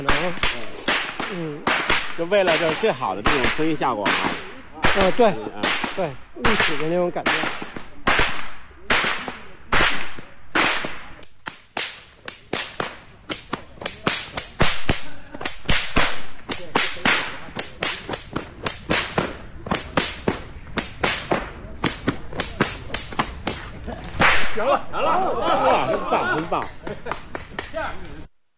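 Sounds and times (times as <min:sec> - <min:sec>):
speech: 0:00.0 - 0:00.7, 0:01.3 - 0:07.6, 0:26.4 - 0:27.0
whip cracking: 0:00.0 - 0:24.7
laughter: 0:04.8 - 0:05.7, 0:23.6 - 0:28.0.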